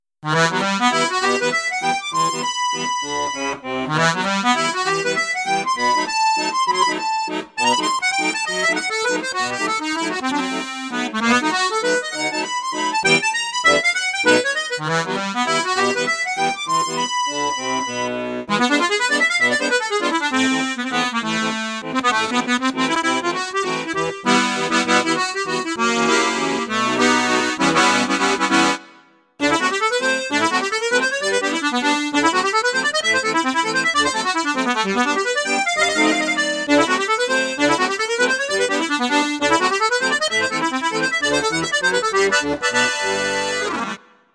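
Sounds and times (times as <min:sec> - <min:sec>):
accordion on high flute register: 0:00.0 - 0:44.3.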